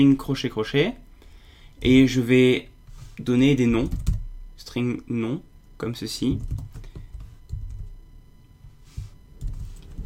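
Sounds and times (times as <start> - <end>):
speech: 0.0 - 1.0, 1.8 - 4.1, 4.7 - 6.7
typing on a computer keyboard while writing code: 3.8 - 4.2, 6.3 - 7.9, 9.4 - 9.9.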